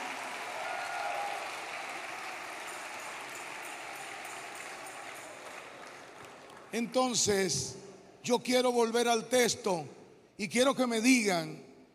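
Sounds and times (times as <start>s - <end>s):
loud audience applause: 0.0s - 7.0s
speech: 6.7s - 11.7s.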